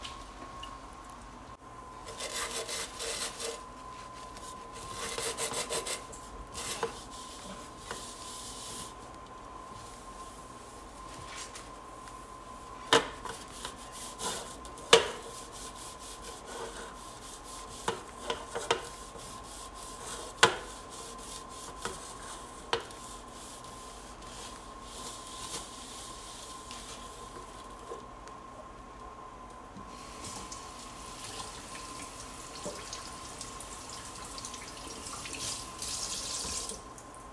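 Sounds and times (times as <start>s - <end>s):
faint steady hum: 0.0s - 37.3s
rubbing and scrubbing while washing and drying a large bowl: 2.0s - 9.1s, 13.1s - 27.6s
running water: 30.4s - 37.2s.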